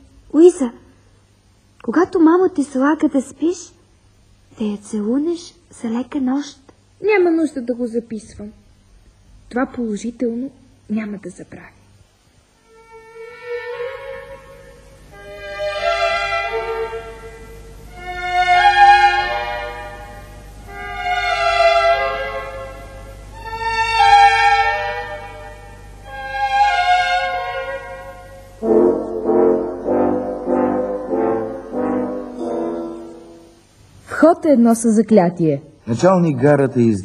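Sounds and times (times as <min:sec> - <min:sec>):
speech: 0:00.3 - 0:00.8, 0:01.8 - 0:03.8, 0:04.5 - 0:08.6, 0:09.5 - 0:11.8, 0:34.3 - 0:37.0
train horns on departure: 0:12.6 - 0:33.7.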